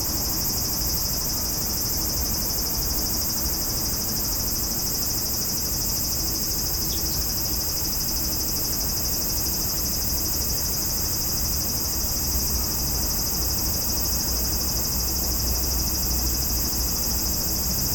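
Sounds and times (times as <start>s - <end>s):
cicadas singing: 0.0s - 17.9s.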